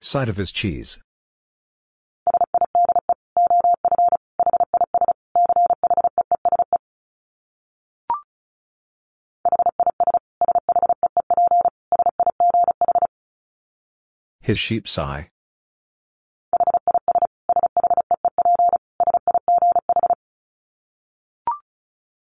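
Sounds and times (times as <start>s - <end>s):
speech: 0.1s - 1.1s, 14.5s - 15.3s
Morse code tone at 35 words per minute: 2.3s - 6.8s, 9.5s - 13.1s, 16.6s - 20.2s.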